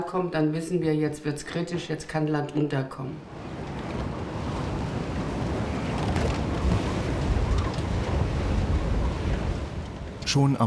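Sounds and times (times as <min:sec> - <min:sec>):
speech: 0:00.1 - 0:03.5, 0:10.3 - 0:10.6
North Sea storm wind: 0:03.2 - 0:10.6
North Sea surf: 0:03.3 - 0:10.6.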